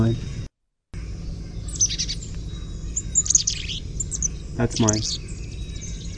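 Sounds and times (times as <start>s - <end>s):
speech: 0.0s - 0.3s, 4.6s - 5.3s
low rumbling background: 0.0s - 6.1s
Carolina chickadee gargle calls: 1.3s - 6.1s.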